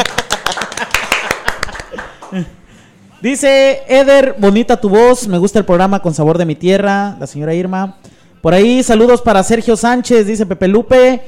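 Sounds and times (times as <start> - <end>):
audience clapping: 0.0 - 2.5
laughter: 0.0 - 2.6
speech: 2.3 - 2.6, 3.2 - 11.2.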